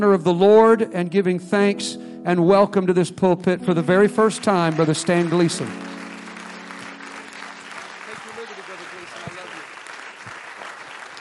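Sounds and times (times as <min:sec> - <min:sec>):
speech: 0:00.0 - 0:05.9
audience clapping and applauding: 0:04.4 - 0:11.1.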